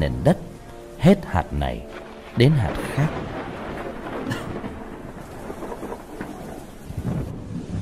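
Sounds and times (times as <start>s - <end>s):
speech: 0.0s - 3.5s
rain: 0.0s - 7.8s
thunder: 1.9s - 7.8s.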